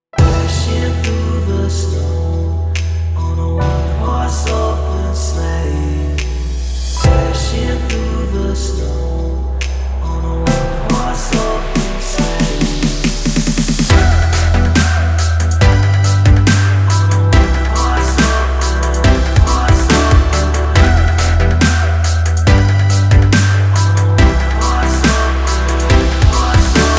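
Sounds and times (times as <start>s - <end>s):
bass drop: 0.2s - 26.9s.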